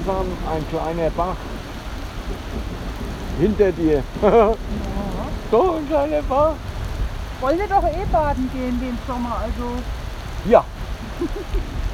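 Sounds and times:
deep rumble of thunder: 0.0s - 11.9s
heavy rain: 0.0s - 11.9s
speech: 0.1s - 1.6s, 3.4s - 6.7s, 7.4s - 11.8s
laughter: 4.2s - 5.4s, 11.0s - 11.9s.

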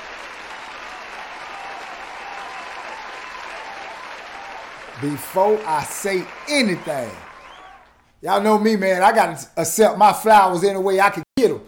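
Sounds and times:
audience applause: 0.0s - 8.0s
speech: 5.0s - 7.3s, 8.2s - 11.6s.

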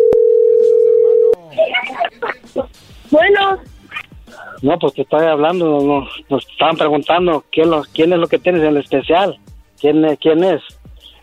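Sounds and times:
telephone dial tone as the phone is dialed again: 0.0s - 1.4s
laughter: 1.4s - 2.8s
speech: 4.6s - 10.7s.

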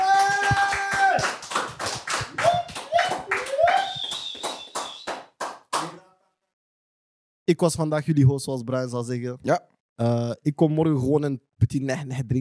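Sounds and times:
whoops and cheers: 0.0s - 1.5s, 2.2s - 5.2s
small audience applause: 0.0s - 6.0s
speech: 7.5s - 12.3s.

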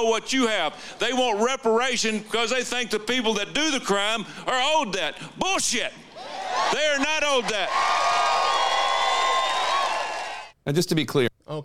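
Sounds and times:
speech: 0.0s - 8.4s, 10.6s - 11.6s
rally crowd cheering: 6.2s - 10.6s.

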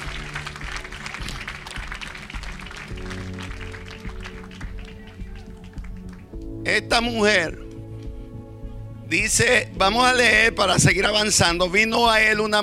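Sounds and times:
audience applause: 0.0s - 6.3s
speech: 6.7s - 7.6s, 9.1s - 12.6s.

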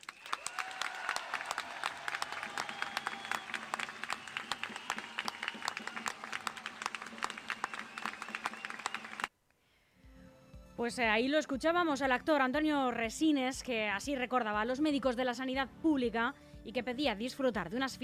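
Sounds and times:
crowd applause: 0.0s - 9.3s
speech: 10.8s - 18.0s.

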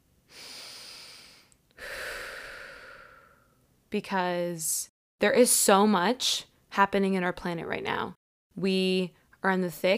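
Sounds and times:
deep breath: 0.3s - 3.6s
speech: 3.9s - 9.9s.

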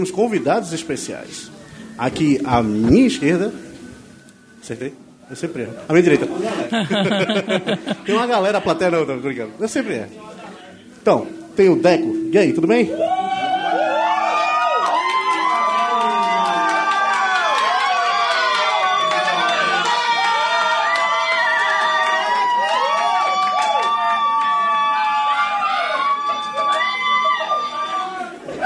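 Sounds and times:
speech: 0.0s - 3.7s, 4.6s - 10.3s, 11.0s - 13.1s
laughter: 6.2s - 8.6s
shouting crowd added in editing: 12.9s - 28.6s
applause added in editing: 14.6s - 24.8s.

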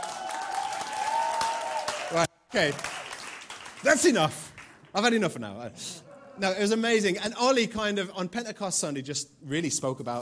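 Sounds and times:
audience clapping: 0.0s - 5.3s
speech: 2.1s - 3.0s, 3.8s - 10.2s.

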